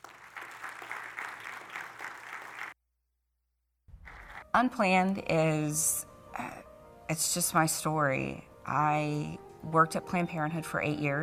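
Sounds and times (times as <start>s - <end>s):
audience applause welcoming a guest speaker: 0.0s - 2.8s, 4.0s - 4.4s
speech: 4.6s - 6.5s, 7.1s - 11.2s.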